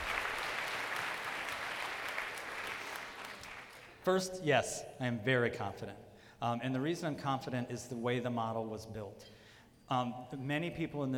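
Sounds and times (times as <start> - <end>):
audience applause: 0.0 - 4.0
speech: 4.0 - 11.1.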